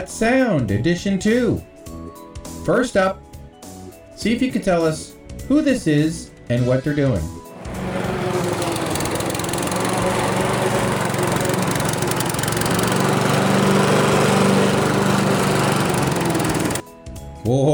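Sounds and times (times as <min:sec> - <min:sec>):
speech: 0:00.0 - 0:03.2, 0:04.2 - 0:07.4, 0:17.5 - 0:17.7
mower engine drone preparing a runway: 0:07.6 - 0:16.8.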